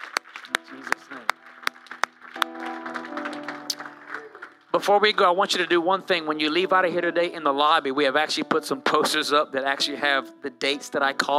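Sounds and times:
audience clapping: 0.0 - 5.3
speech: 4.8 - 11.3.

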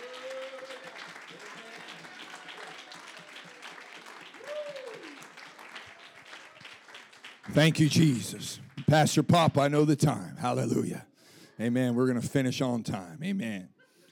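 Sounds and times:
audience clapping hands: 0.0 - 9.7
speech: 7.6 - 13.7.

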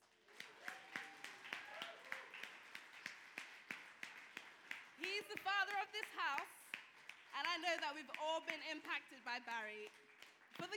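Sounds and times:
audience applause: 0.0 - 7.5
speech: 5.3 - 6.6, 7.4 - 10.7.

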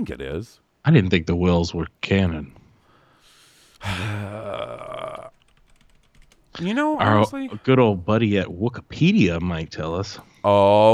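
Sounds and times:
speech: 0.0 - 2.6, 3.8 - 5.0, 6.6 - 10.9
burp-like voiced tone: 3.8 - 5.3
computer keyboard typing to look up Wikipedia: 4.9 - 6.8.

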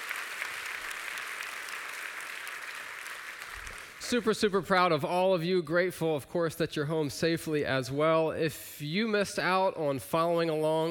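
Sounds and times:
round of applause: 0.0 - 4.4
speech: 4.1 - 10.8.

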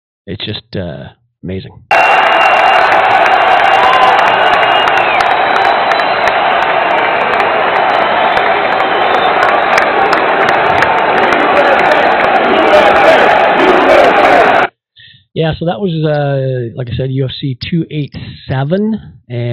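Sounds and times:
speech: 0.2 - 2.0, 15.4 - 19.5
arena crowd chanting and cheering: 1.9 - 14.7.

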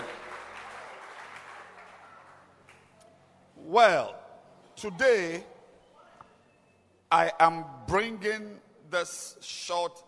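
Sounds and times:
crowd clapping: 0.0 - 3.0
speech: 3.7 - 4.2, 4.8 - 5.5, 7.1 - 10.0.

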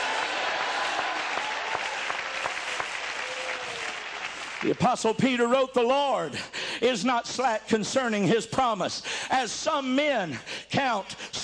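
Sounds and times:
audience shouting hallelujah: 0.0 - 4.7
audience clapping: 0.0 - 5.3
speech: 4.6 - 11.4.

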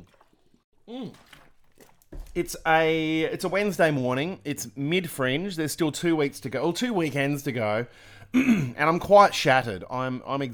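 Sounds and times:
person gulping water: 0.0 - 2.4, 8.4 - 8.8
speech: 0.9 - 1.4, 2.4 - 10.5.

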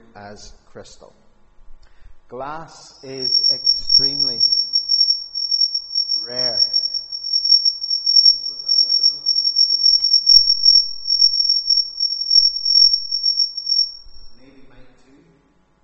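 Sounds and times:
speech: 0.2 - 1.2, 2.3 - 4.6, 6.3 - 6.7
mobile phone ringing: 3.2 - 14.2.

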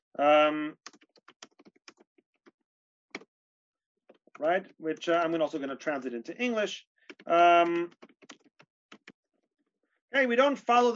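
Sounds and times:
typing on a computer keyboard: 0.8 - 2.6, 7.0 - 9.2
speech: 4.4 - 8.4, 10.1 - 10.9.

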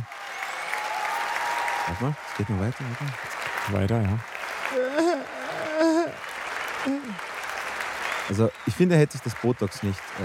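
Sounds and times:
crowd applauding: 0.0 - 10.2
speech: 1.9 - 5.9, 6.8 - 7.3, 8.3 - 10.2.

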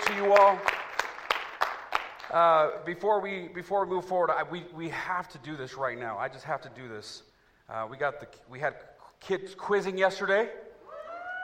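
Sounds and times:
audience applause: 0.0 - 2.3
speech: 0.2 - 0.8, 2.3 - 10.6.

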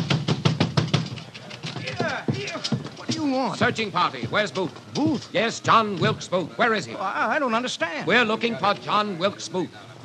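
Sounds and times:
heavy pounding on a door: 0.0 - 5.2
speech: 3.3 - 9.9.

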